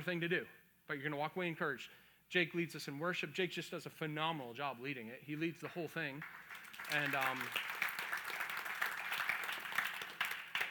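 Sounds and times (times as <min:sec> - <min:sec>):
speech: 0:00.0 - 0:07.8
church audience clapping for the worship leader: 0:06.2 - 0:10.7.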